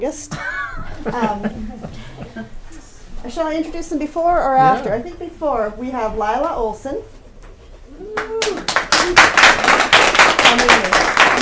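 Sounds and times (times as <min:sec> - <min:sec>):
speech: 0:00.0 - 0:02.6, 0:03.2 - 0:07.2
applause for introduced guest: 0:08.2 - 0:11.4.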